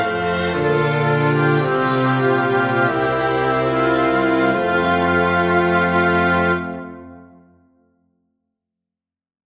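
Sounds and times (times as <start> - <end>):
wind and string ensemble: 0.0 - 7.0.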